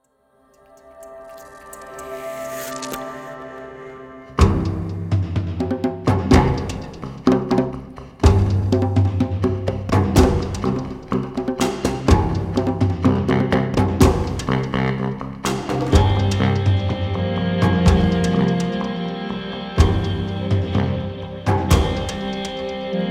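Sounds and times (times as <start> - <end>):
tribal trance music teaser: 0.3 - 23.0.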